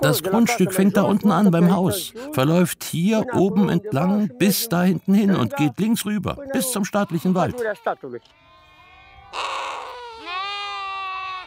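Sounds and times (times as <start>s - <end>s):
speech: 0.0s - 8.4s
lambs bleating in a stable: 6.5s - 11.4s.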